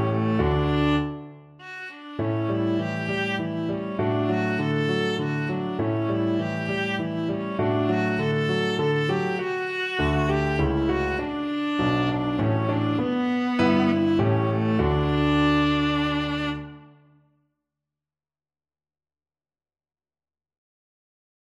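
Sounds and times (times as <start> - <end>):
viola playing waltzes: 0.0 - 17.0.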